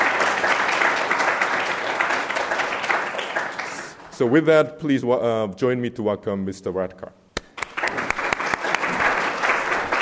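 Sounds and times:
audience applause: 0:00.0 - 0:04.1, 0:07.6 - 0:10.0
speech: 0:04.2 - 0:07.2.

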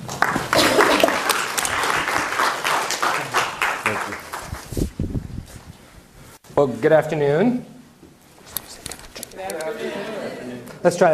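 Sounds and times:
audience applause welcoming a guest speaker at UCI: 0:00.0 - 0:04.7
speech: 0:06.6 - 0:07.7, 0:10.8 - 0:11.1.

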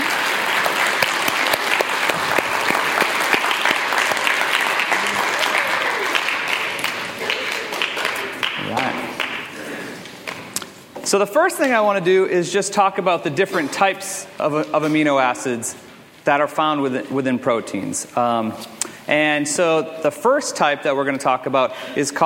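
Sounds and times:
audience round of applause: 0:00.0 - 0:10.4
speech: 0:11.1 - 0:22.2.

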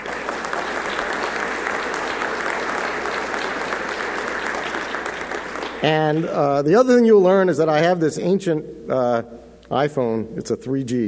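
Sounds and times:
audience round of applause: 0:00.0 - 0:06.4
speech: 0:05.8 - 0:11.0.

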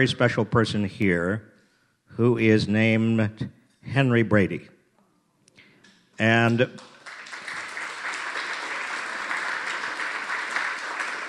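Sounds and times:
speech: 0:00.0 - 0:01.5, 0:02.2 - 0:04.8, 0:06.2 - 0:06.9
audience applause for a speaker at a Goldman School gathering: 0:06.8 - 0:11.2.

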